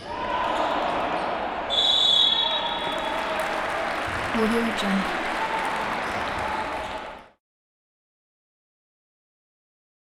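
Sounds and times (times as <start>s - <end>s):
indoor basketball match ambience: 0.0s - 7.4s.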